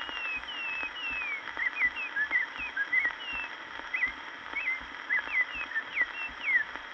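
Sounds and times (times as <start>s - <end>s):
bird singing whistled notes and chirps: 0.0s - 6.8s.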